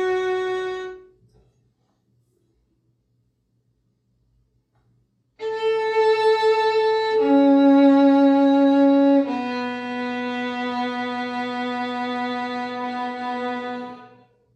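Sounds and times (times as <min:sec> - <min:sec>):
beginner solo violin: 0:00.0 - 0:01.1, 0:05.4 - 0:14.3.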